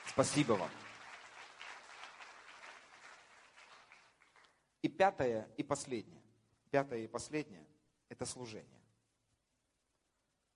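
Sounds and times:
audience applause: 0:00.0 - 0:04.6
speech: 0:00.2 - 0:00.8, 0:04.8 - 0:08.8.

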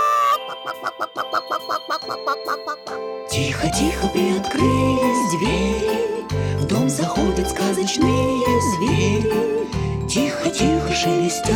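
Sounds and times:
chicken clucking: 0:00.0 - 0:03.0
speech: 0:00.6 - 0:11.5.

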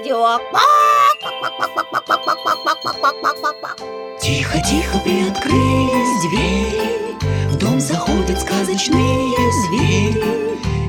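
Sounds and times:
speech: 0:00.0 - 0:10.7
chicken clucking: 0:00.6 - 0:03.8.

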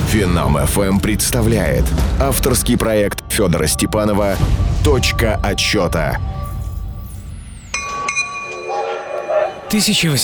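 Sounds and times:
speech: 0:00.2 - 0:06.4, 0:09.7 - 0:10.2
metallic clinks and clanks of a train at Mount Clemens railway station: 0:07.7 - 0:09.4.

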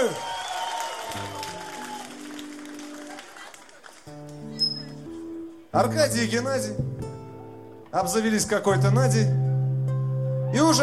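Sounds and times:
audience applause: 0:00.0 - 0:04.5
speech: 0:05.8 - 0:07.0, 0:07.9 - 0:09.4, 0:10.5 - 0:10.8.

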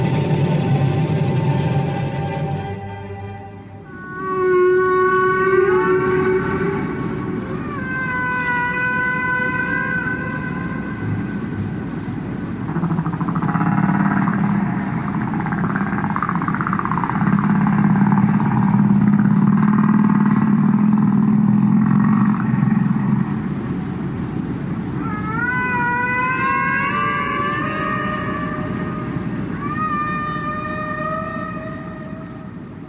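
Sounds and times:
recorded humpback whale song: 0:00.0 - 0:32.8.

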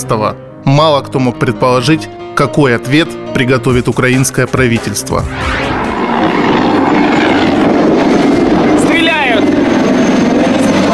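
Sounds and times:
speech: 0:00.0 - 0:06.5
helicopters circling overhead: 0:05.1 - 0:10.9.

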